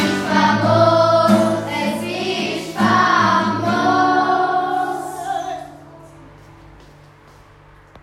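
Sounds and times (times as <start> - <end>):
second grade class singing a circus song: 0.0 - 6.2.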